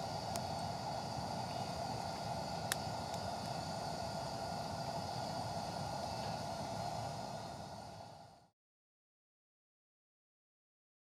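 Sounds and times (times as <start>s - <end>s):
barbecue gas burner: 0.0s - 8.5s.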